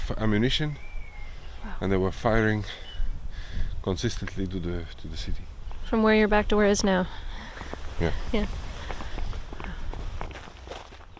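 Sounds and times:
speech: 0:00.1 - 0:00.9, 0:01.6 - 0:02.9, 0:03.8 - 0:08.7
footsteps of people walking on a narrow strip of grass between fields: 0:07.5 - 0:11.1.

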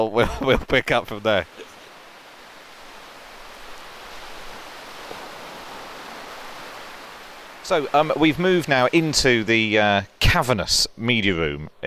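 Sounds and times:
speech: 0:00.0 - 0:01.7, 0:07.7 - 0:11.8
heavy rain falling outdoors: 0:00.8 - 0:10.1.

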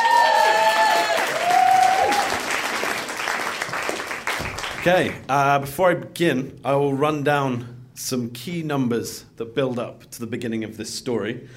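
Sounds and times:
audience applause and cheering: 0:00.0 - 0:05.2
speech: 0:04.8 - 0:11.5.

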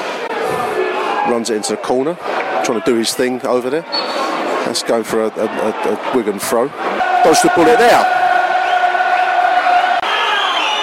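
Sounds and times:
football crowd roar at a Millwall match: 0:00.0 - 0:03.4, 0:04.0 - 0:10.8
speech: 0:01.3 - 0:08.2
football crowd whistling at a Millwall match against Wigan: 0:03.9 - 0:04.3, 0:06.9 - 0:10.8.

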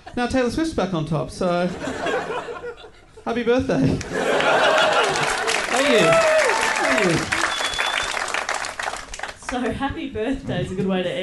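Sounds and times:
speech: 0:00.2 - 0:02.5, 0:03.2 - 0:04.6, 0:05.9 - 0:06.3, 0:07.0 - 0:07.4, 0:09.5 - 0:11.2
laughter: 0:01.7 - 0:03.2, 0:04.0 - 0:07.5
audience applause: 0:04.2 - 0:09.6
falling whoop or cheer: 0:05.7 - 0:07.4.

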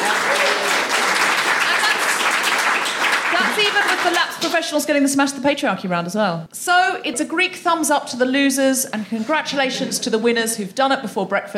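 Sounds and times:
audience applause: 0:00.0 - 0:04.4
speech: 0:03.7 - 0:11.5.

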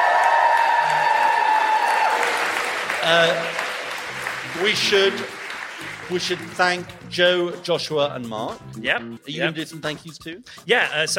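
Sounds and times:
audience applauding at a live show in Sheffield: 0:00.0 - 0:06.9
speech: 0:03.1 - 0:03.5, 0:04.6 - 0:11.1.

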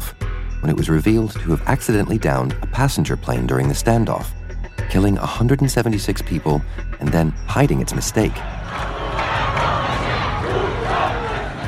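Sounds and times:
speech: 0:00.6 - 0:09.0
rhythmic yelling: 0:08.0 - 0:11.6
street protest crowd shouting: 0:08.2 - 0:11.6.

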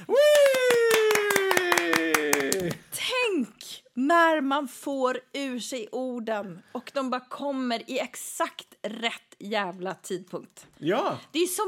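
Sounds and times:
applause: 0:00.0 - 0:02.9
speech: 0:04.0 - 0:11.6.

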